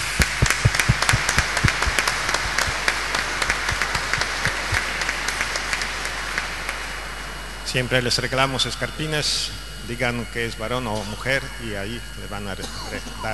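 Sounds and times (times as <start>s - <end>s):
audience applause: 0.0s - 7.4s
speech: 7.7s - 13.3s.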